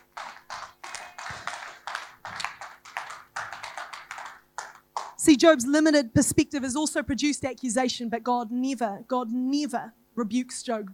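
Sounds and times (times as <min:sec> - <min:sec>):
audience clapping hands: 0:00.0 - 0:05.2
speech: 0:05.2 - 0:10.9.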